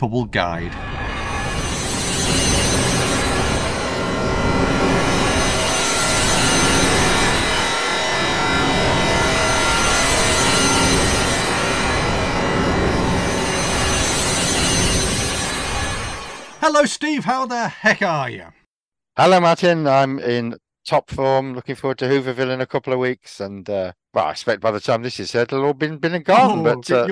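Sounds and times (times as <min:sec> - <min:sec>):
speech: 0:00.0 - 0:01.0, 0:16.6 - 0:18.6, 0:19.2 - 0:27.0
time machine engines firing up: 0:00.8 - 0:16.6.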